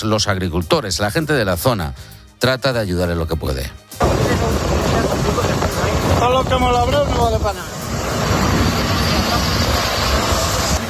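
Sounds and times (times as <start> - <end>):
speech: 0.0 - 5.6, 6.2 - 8.4
firefighting helicopter working over a wildfire near farmland: 4.0 - 10.8.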